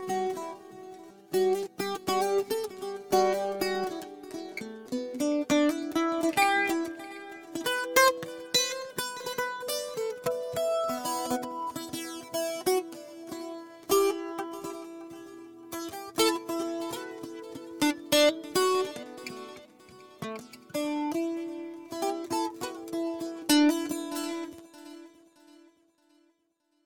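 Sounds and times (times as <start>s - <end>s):
guitar improvisation through Em100 echo: 0.0s - 26.2s.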